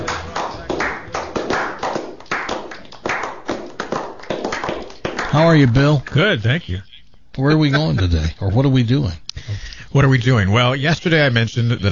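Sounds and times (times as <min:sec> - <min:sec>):
audience applause: 0:00.0 - 0:05.3
speech: 0:05.3 - 0:11.8.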